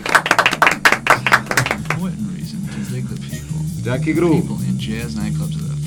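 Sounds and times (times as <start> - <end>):
hand claps: 0.0 - 2.1
speech: 3.8 - 5.7.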